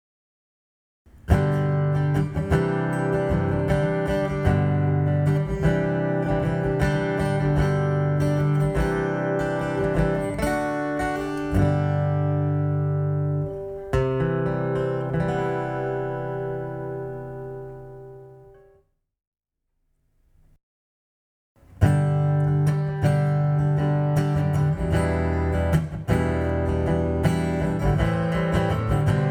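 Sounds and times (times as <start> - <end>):
acoustic folk music: 1.1 - 18.7, 21.6 - 29.2.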